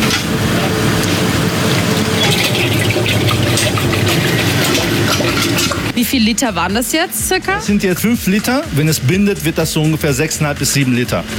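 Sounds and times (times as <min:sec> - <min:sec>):
ice cream mix poured into ice machine: 0:00.0 - 0:05.9
low mechanical hum: 0:00.0 - 0:11.3
speech: 0:06.2 - 0:11.3.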